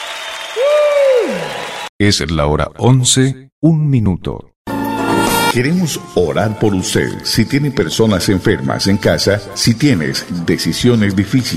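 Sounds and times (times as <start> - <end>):
audience applause: 0.0 - 1.9
speech: 2.0 - 4.5, 5.5 - 11.5.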